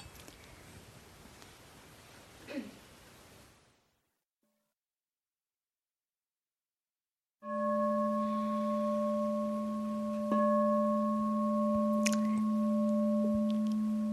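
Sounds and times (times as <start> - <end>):
meditation bells ringing: 7.5 - 14.1.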